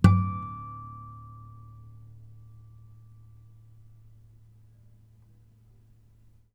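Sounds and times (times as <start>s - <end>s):
string harmonics: 0.0s - 3.9s.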